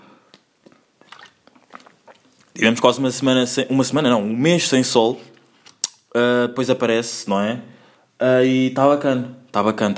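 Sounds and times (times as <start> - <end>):
person drinking water: 0.6 - 2.6
speech: 2.6 - 5.4, 6.1 - 9.9.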